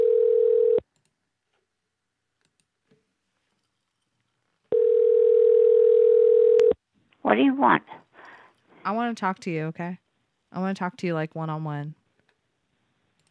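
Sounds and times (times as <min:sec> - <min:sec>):
telephone dial tone: 0:00.0 - 0:00.8, 0:04.7 - 0:06.8
speech: 0:07.4 - 0:08.0, 0:08.8 - 0:12.0.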